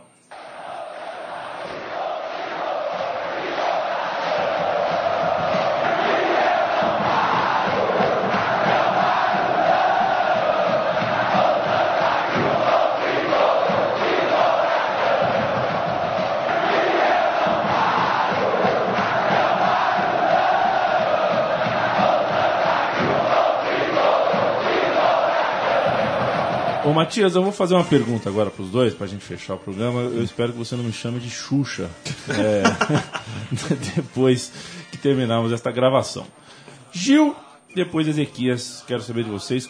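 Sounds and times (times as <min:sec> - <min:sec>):
football supporters singing a chant in a stadium: 0:00.3 - 0:27.2
speech: 0:27.0 - 0:36.4, 0:37.0 - 0:39.6
laughter: 0:32.0 - 0:34.3.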